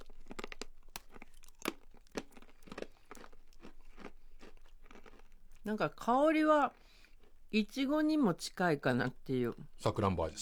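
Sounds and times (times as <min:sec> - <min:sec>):
La France pear flavoured snack package tearing open: 0:00.0 - 0:03.3
crunching La France pear flavoured snack: 0:00.0 - 0:05.7, 0:06.7 - 0:07.5
speech: 0:05.6 - 0:06.8, 0:07.5 - 0:10.4.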